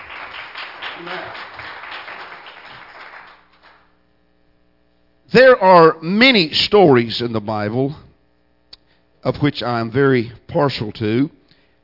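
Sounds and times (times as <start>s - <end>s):
audience clapping hands: 0.0s - 4.0s
speech: 1.0s - 1.5s, 5.3s - 8.0s, 9.2s - 11.4s.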